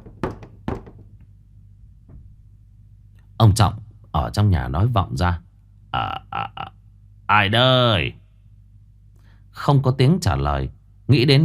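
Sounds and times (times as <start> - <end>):
knocking on the wooden door of a village chief's house: 0.0 - 1.2
low steady hum: 0.0 - 11.4
speech: 3.4 - 6.7, 7.3 - 8.2, 9.6 - 11.4.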